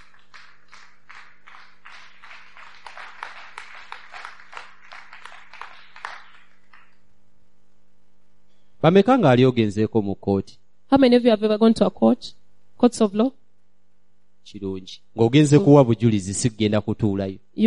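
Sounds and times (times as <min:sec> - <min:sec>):
audience clapping: 0:00.0 - 0:07.1
speech: 0:08.8 - 0:13.4, 0:14.4 - 0:17.6.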